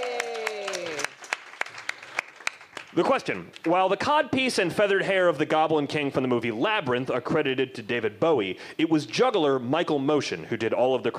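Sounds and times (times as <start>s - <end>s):
audience applause for bartenders and servers: 0.0s - 3.2s
speech: 2.9s - 11.1s.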